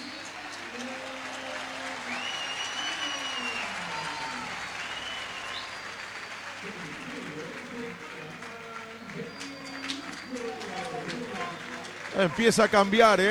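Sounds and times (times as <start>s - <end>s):
stadium crowd applauding: 0.0s - 13.2s
broadcaster talking: 6.7s - 13.2s
speech: 12.2s - 13.2s.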